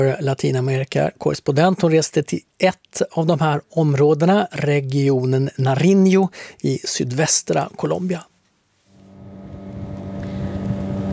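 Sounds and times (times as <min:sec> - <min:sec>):
speech: 0:00.0 - 0:08.3
motorboat engine droning on the Patía River near Tumaco, Colombia: 0:09.0 - 0:11.1.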